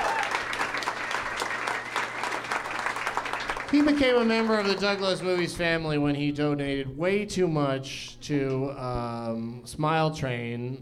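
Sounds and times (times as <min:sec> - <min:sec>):
audience applause: 0:00.0 - 0:05.6
speech: 0:03.7 - 0:10.8.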